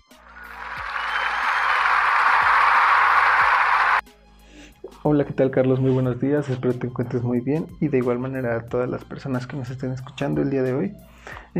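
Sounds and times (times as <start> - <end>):
group applauding: 0.0 - 4.0
speech: 5.0 - 11.5.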